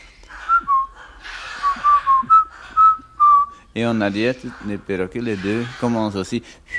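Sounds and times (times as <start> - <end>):
soldiers whistling a tune in a war film: 0.4 - 1.0, 1.6 - 3.6
speech: 3.8 - 6.7.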